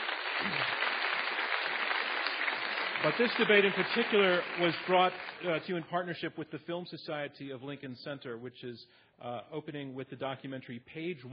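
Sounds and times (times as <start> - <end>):
audience round of applause: 0.0 - 5.8
speech: 3.0 - 11.3.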